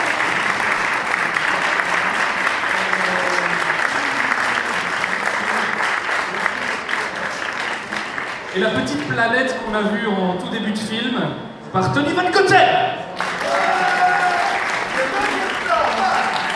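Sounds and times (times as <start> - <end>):
audience applause: 0.0 - 9.2, 13.1 - 16.5
speech: 8.6 - 12.8.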